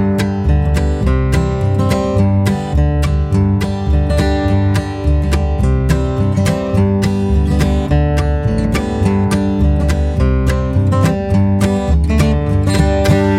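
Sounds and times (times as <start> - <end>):
folk tune: 0.0 - 13.3.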